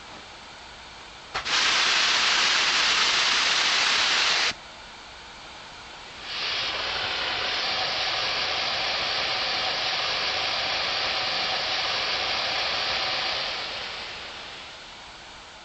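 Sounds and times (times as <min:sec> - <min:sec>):
H0 model steam locomotive sound decoder: 0:01.4 - 0:04.6, 0:06.1 - 0:14.9.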